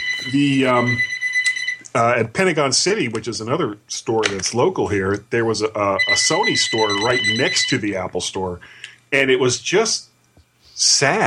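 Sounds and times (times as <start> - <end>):
mobile phone ringing: 0.0 - 1.9, 6.0 - 7.8
speech: 0.2 - 1.1, 2.0 - 10.1, 10.8 - 11.2.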